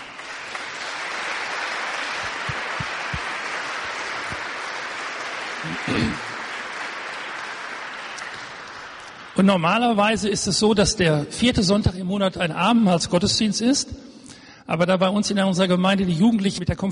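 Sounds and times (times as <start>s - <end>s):
audience applause: 0.0s - 9.6s
speech: 9.4s - 16.9s.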